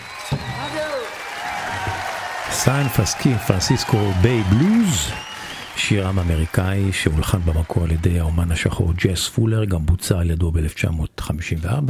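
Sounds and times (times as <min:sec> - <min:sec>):
audience applause at unplugged concert recording: 0:00.0 - 0:09.0
speech: 0:02.5 - 0:11.8.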